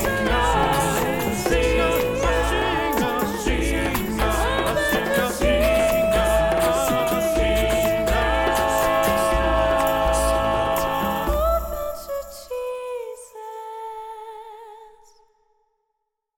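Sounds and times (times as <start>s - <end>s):
SATB choir singing: 0.0s - 12.6s
percussion: 0.0s - 13.0s
solo singer: 0.0s - 15.1s.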